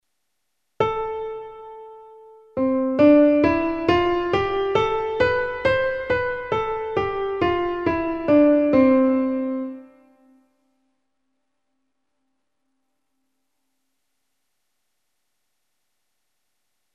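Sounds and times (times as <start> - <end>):
musical scale: 2.6 - 10.3.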